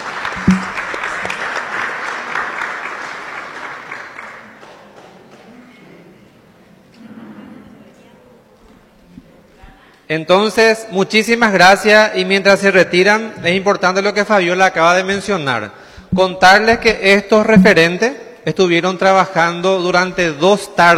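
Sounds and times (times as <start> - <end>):
audience applause: 0.0 - 5.5
speech: 10.1 - 20.9.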